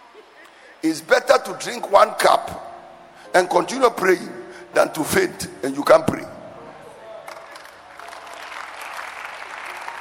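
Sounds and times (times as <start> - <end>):
speech: 0.8 - 2.7, 3.3 - 6.4
faint crowd murmur: 6.4 - 8.0
audience clapping: 7.2 - 9.9.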